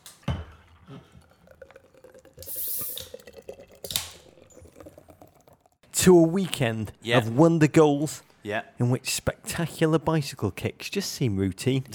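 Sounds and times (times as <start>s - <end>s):
hissing spraying rush of gas and foam: 2.4s - 3.1s
cans of Guinness Draught beer cracked open: 3.8s - 4.4s
speech: 6.0s - 11.9s.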